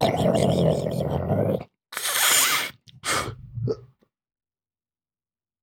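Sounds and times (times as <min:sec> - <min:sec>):
huge bong rip: 0:00.0 - 0:04.0.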